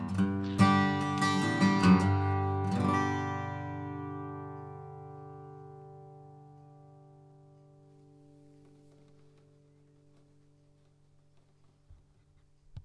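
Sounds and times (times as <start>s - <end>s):
flatpicked nylon-string guitar: 0.0s - 8.8s.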